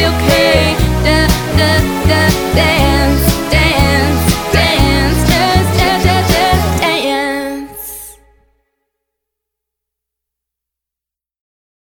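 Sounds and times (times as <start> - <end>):
wedding band playing: 0.0 - 7.0.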